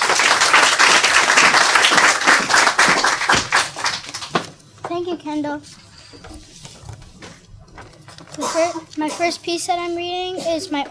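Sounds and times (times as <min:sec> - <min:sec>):
audience applause: 0:00.0 - 0:04.5
speech: 0:05.0 - 0:06.5, 0:08.4 - 0:10.8.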